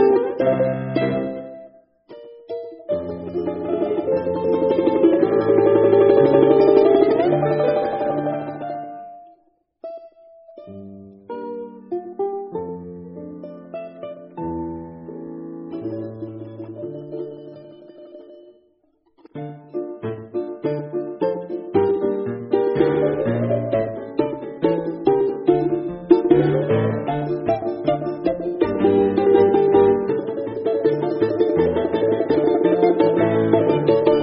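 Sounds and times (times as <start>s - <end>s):
balalaika: 0.0s - 34.2s.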